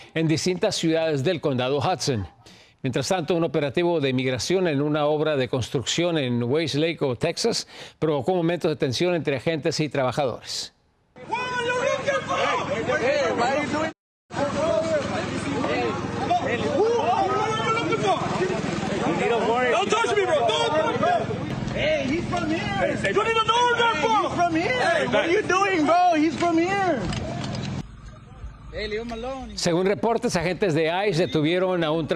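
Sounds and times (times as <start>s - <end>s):
speech: 0.2s - 11.6s, 28.8s - 32.1s
workers shouting during an arrest: 11.2s - 27.8s.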